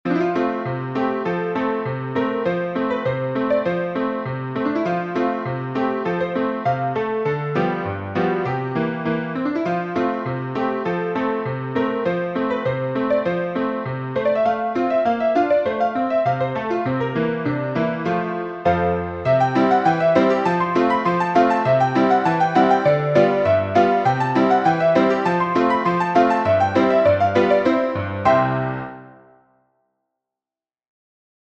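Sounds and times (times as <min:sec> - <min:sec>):
piano: 0:00.0 - 0:29.7.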